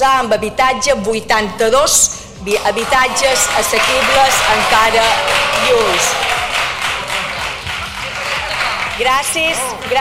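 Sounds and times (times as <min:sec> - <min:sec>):
speech: 0:00.0 - 0:06.4, 0:09.0 - 0:09.9
group applauding ironically in parliament: 0:02.5 - 0:09.9.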